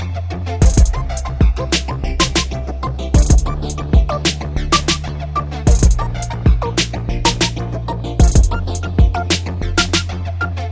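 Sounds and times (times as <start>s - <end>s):
hip hop ringtone: 0.6s - 10.6s.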